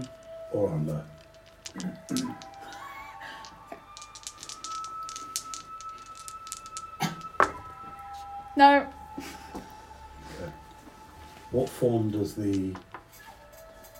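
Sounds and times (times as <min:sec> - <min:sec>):
speech: 0:00.5 - 0:01.2, 0:01.8 - 0:02.5, 0:08.6 - 0:09.3, 0:11.5 - 0:12.9
percentile dice rolled for a Dungeons and Dragons game: 0:01.0 - 0:07.6.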